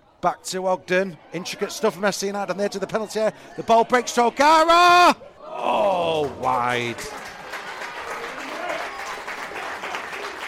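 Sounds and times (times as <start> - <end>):
speech: 0.2 - 7.2
crowd applause at football match: 5.6 - 10.4.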